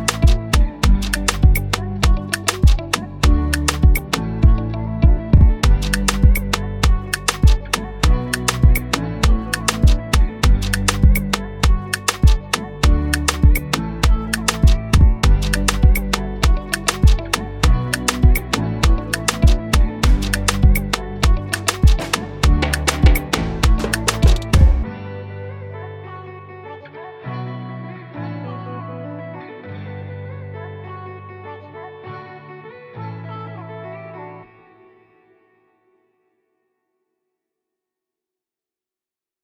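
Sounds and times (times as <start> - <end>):
Afrobeat and Afro-gospel type beat: 0.0 - 24.9.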